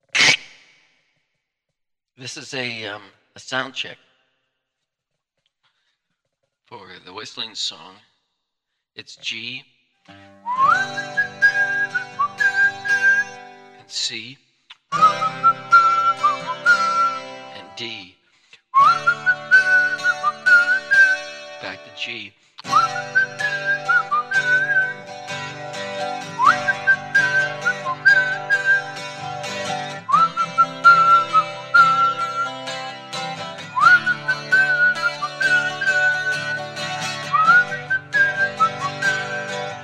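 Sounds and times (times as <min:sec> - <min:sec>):
person whistling a song at a soundcheck: 0:10.4 - 0:13.4, 0:14.8 - 0:17.3, 0:18.8 - 0:21.3, 0:22.7 - 0:25.1, 0:26.3 - 0:29.1, 0:30.1 - 0:32.8, 0:33.7 - 0:39.8.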